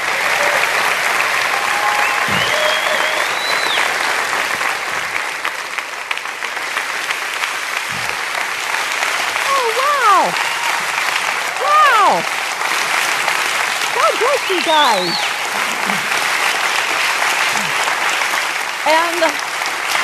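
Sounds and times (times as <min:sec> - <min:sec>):
cheering whoops: 0:00.0 - 0:04.2, 0:09.2 - 0:12.7, 0:14.0 - 0:16.1
audience applause welcoming a guest speaker at a ministry event: 0:00.0 - 0:20.0
speech: 0:14.5 - 0:15.3, 0:18.8 - 0:19.4.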